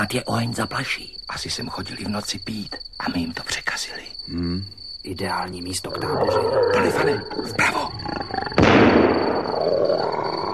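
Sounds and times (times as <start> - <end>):
speech: 0.0 - 8.3
jaguars or pumas roaring and growling: 5.9 - 8.8, 9.4 - 10.5.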